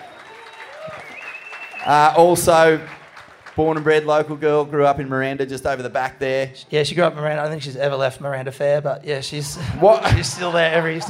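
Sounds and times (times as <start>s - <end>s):
audience applause: 0.0s - 4.2s
speech: 1.8s - 3.0s, 3.6s - 11.0s
laughter: 9.3s - 11.0s.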